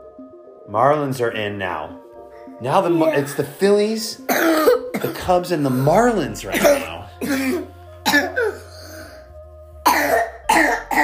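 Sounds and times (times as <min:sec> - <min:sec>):
speech: 0:00.7 - 0:08.5
throat clearing: 0:04.3 - 0:08.6, 0:09.9 - 0:11.0
person coughing: 0:04.3 - 0:08.7, 0:09.8 - 0:11.0.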